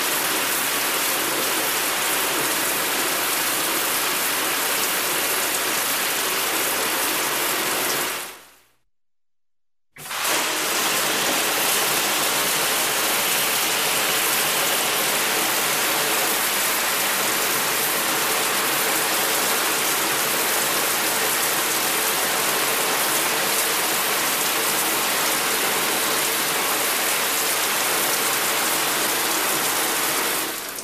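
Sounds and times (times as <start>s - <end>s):
water running in a shower: 0.0s - 8.4s, 10.0s - 30.8s.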